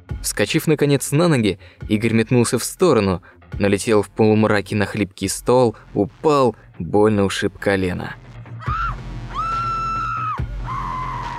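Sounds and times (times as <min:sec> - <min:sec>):
speech: 0:00.2 - 0:08.2
woman screaming: 0:08.6 - 0:11.3.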